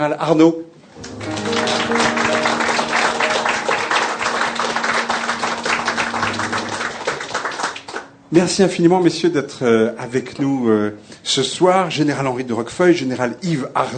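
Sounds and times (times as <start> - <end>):
speech: 0.0 - 0.8, 8.3 - 13.9
audience applause welcoming guests: 1.0 - 8.2.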